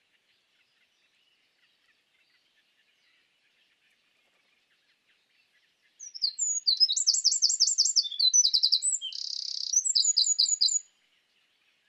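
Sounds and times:
Eurasian wren song: 6.0s - 11.1s.

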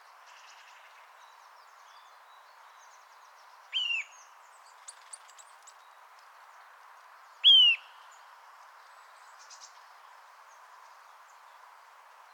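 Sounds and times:
Eurasian nuthatch Sitta europaea whistled calls: 3.7s - 4.3s, 7.4s - 8.0s.

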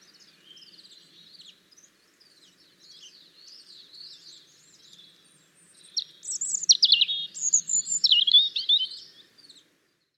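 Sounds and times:
European robin singing: 0.0s - 9.7s.

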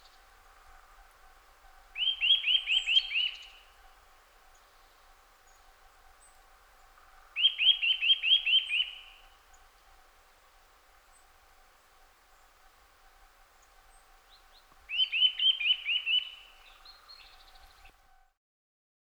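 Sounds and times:
Eurasian nuthatch calling: 1.9s - 4.0s, 7.4s - 9.4s, 13.6s - 17.9s.

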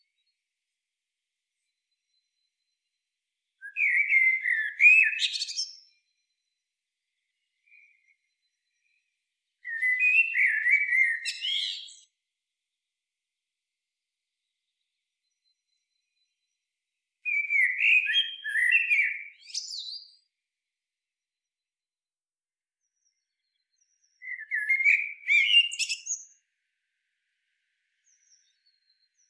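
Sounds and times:
Eurasian blackbird singing: 3.6s - 6.3s, 7.2s - 9.0s, 9.6s - 12.1s, 17.2s - 20.3s, 22.9s - 26.4s, 28.0s - 29.2s.

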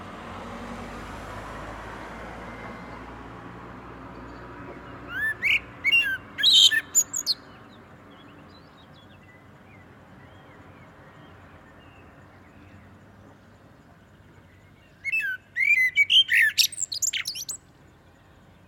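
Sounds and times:
Common blackbird Turdus merula whistling and twittering: 5.1s - 7.5s, 15.0s - 17.6s.

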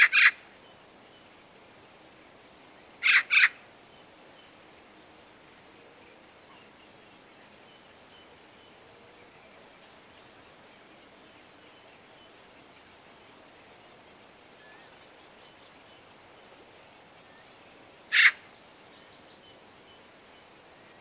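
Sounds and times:
Eurasian magpie Pica pica calling with harsh noisy rasps: 0.0s - 0.4s, 3.0s - 3.6s, 18.1s - 18.4s.

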